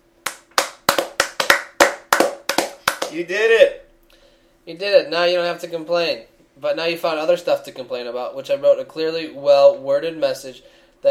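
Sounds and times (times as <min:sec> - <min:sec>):
sharp hand claps: 0:00.2 - 0:03.2
speech: 0:03.1 - 0:03.8, 0:04.7 - 0:11.0.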